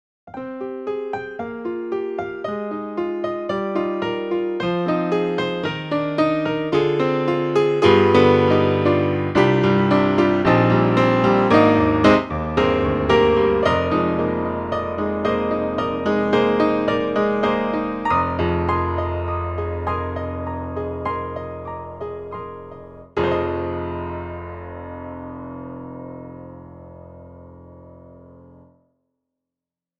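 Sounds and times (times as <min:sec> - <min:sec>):
piano: 0:00.3 - 0:28.8.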